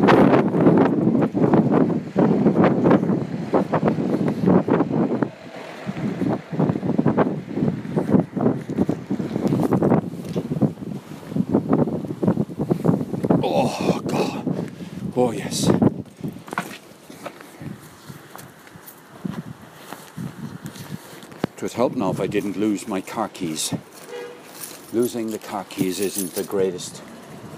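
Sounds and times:
strong wind: 0:00.0 - 0:27.5
speech: 0:21.8 - 0:24.0, 0:24.9 - 0:27.5.

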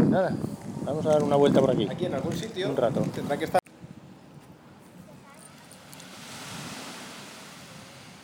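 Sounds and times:
speech: 0:00.2 - 0:03.6
ocean waves: 0:05.4 - 0:08.2.

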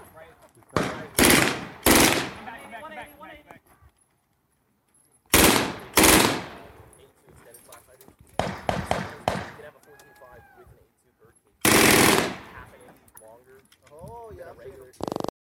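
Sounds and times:
man talking: 0:00.0 - 0:01.5, 0:06.7 - 0:15.0
PPSh submachine gun fire in a video game: 0:00.8 - 0:02.5, 0:05.3 - 0:06.7, 0:08.4 - 0:09.6, 0:11.6 - 0:12.6.

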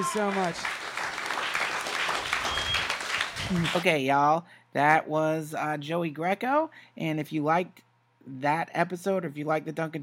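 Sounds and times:
speech: 0:00.0 - 0:00.8, 0:03.4 - 0:10.0
audience applause: 0:00.0 - 0:03.8.

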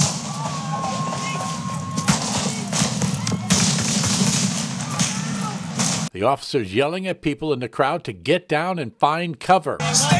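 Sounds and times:
gunshots fired at a block party: 0:00.0 - 0:06.1
speech: 0:06.2 - 0:10.1.

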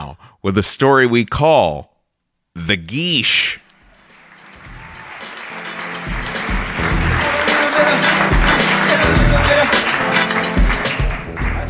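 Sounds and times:
speech: 0:00.1 - 0:01.9, 0:02.6 - 0:03.6
audience clapping: 0:03.8 - 0:11.6.

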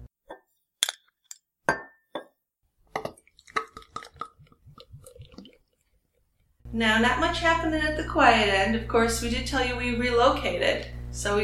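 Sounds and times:
glass clinking as a 4.9% beer is opened: 0:01.7 - 0:02.3
speech: 0:06.8 - 0:11.4.

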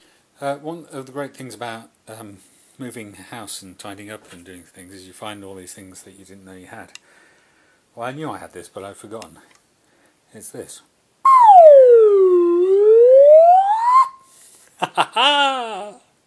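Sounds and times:
whistle: 0:11.3 - 0:14.3.

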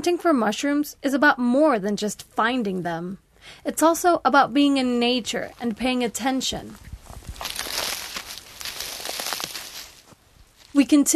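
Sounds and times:
speech: 0:00.0 - 0:06.9, 0:10.8 - 0:11.1
footsteps crunching dry leaves: 0:06.6 - 0:10.8.

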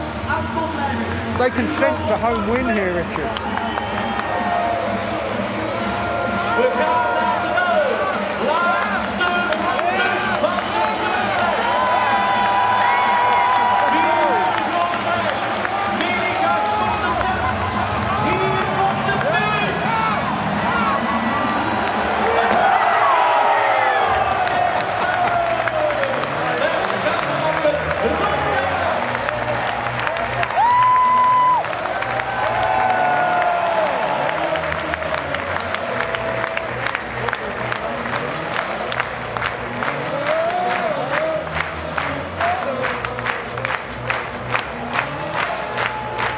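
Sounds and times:
large stadium crowd roaring and cheering: 0:00.0 - 0:46.3
speech: 0:00.4 - 0:03.8
applause: 0:01.0 - 0:04.6, 0:08.4 - 0:19.8, 0:21.4 - 0:46.3.

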